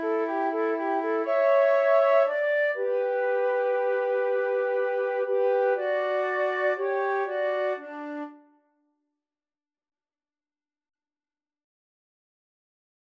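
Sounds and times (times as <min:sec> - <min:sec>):
flute trio playing a minuet: 0:00.0 - 0:08.5.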